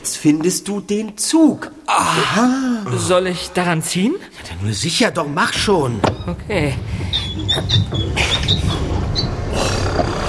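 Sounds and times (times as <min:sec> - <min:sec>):
speech: 0:00.2 - 0:10.2
high creaks and squeaks: 0:05.4 - 0:10.2
secret wall door sliding open: 0:05.5 - 0:10.2.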